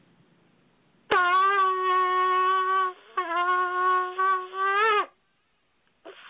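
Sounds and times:
shofar blast: 1.1s - 5.1s.

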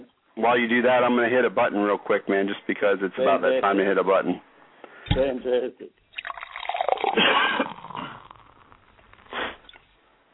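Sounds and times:
speech: 0.4s - 4.5s, 5.1s - 6.0s
beer being poured: 6.0s - 9.8s.

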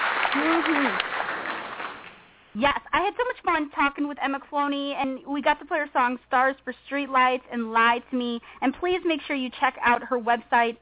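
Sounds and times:
studio audience applause for a guest musician: 0.0s - 2.2s
person cheering: 0.3s - 1.0s
speech: 0.4s - 1.1s, 2.6s - 10.8s.

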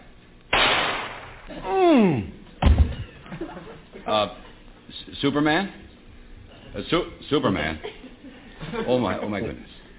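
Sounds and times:
gunshot from a .22 gun: 0.5s - 1.5s
speech: 1.5s - 2.4s, 3.4s - 4.5s, 5.2s - 5.8s, 6.7s - 8.1s, 8.7s - 9.7s
laughter: 2.9s - 4.6s, 7.6s - 9.9s.

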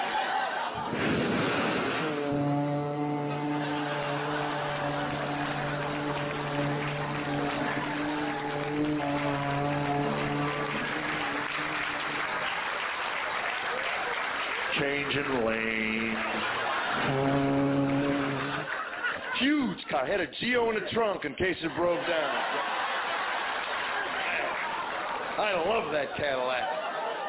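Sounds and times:
laughter: 0.0s - 1.1s, 2.3s - 27.2s
deep boat horn sound effect: 1.7s - 12.8s, 15.0s - 18.8s
speech: 20.7s - 22.6s, 25.4s - 26.8s.

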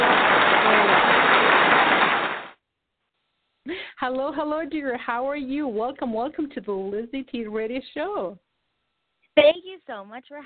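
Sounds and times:
audience applause: 0.0s - 2.6s
speech: 4.0s - 8.4s, 9.4s - 10.4s.

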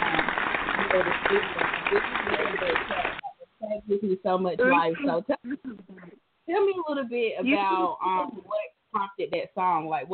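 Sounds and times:
round of applause sound effect: 0.0s - 3.2s
speech: 0.9s - 5.9s, 6.5s - 8.4s, 9.0s - 10.1s.

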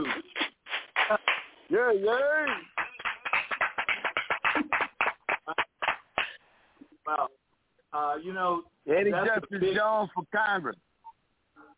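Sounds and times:
hand clapping: 0.0s - 6.4s
speech: 1.1s - 2.7s, 8.2s - 10.8s.

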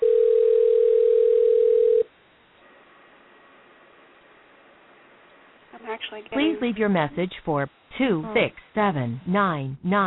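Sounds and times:
telephone ringing tone on the line: 0.0s - 2.1s
speech: 6.1s - 10.0s.

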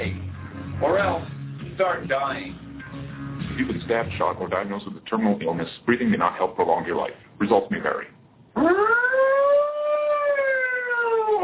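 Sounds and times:
speech: 0.8s - 2.6s, 3.6s - 8.9s
fire truck siren: 8.6s - 11.4s.

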